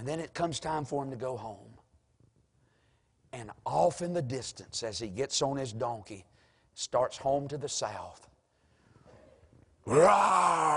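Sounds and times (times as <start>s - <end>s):
speech: 0.0s - 1.7s, 3.3s - 8.3s, 9.8s - 10.7s
voice imitating a lion roaring: 9.9s - 10.7s.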